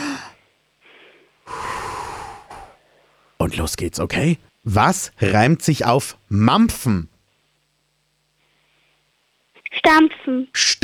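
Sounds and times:
breathing in and out: 0:00.0 - 0:03.4
speech: 0:03.5 - 0:07.1, 0:09.9 - 0:10.8.

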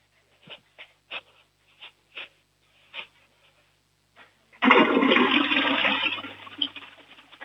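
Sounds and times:
toilet flush: 0:04.6 - 0:07.4.

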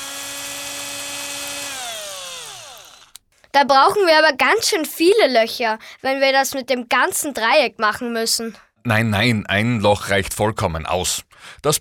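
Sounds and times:
power drill boring a hole: 0:00.0 - 0:03.2
speech: 0:03.6 - 0:11.7.

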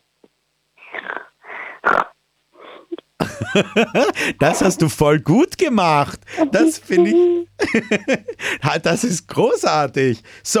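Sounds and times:
person imitating a piglet's grunts and snorts: 0:00.8 - 0:03.1, 0:03.9 - 0:05.0, 0:05.8 - 0:07.5
laughter: 0:03.2 - 0:05.0, 0:05.9 - 0:08.6
speech: 0:03.4 - 0:10.5.

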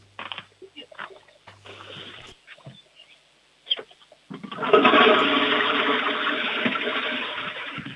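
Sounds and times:
toilet flushing: 0:04.4 - 0:07.9.

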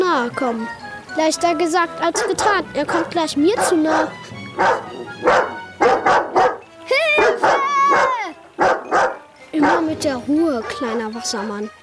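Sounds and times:
speech: 0:00.2 - 0:06.3, 0:09.6 - 0:11.8
dog barking: 0:02.1 - 0:10.0.

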